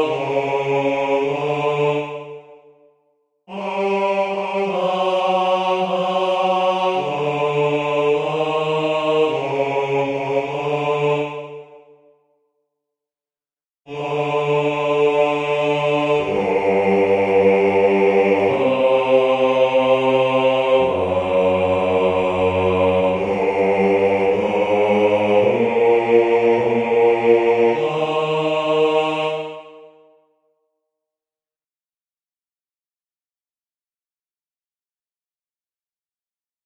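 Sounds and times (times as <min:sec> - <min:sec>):
bass part of a chorale: 0:00.0 - 0:02.8, 0:03.5 - 0:12.1, 0:13.9 - 0:30.1.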